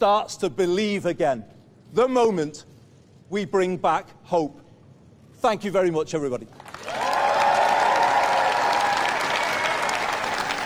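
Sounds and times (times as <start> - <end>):
speech: 0.0 - 2.7, 3.3 - 4.6, 5.4 - 7.1
audience applause after a speech: 6.6 - 10.6.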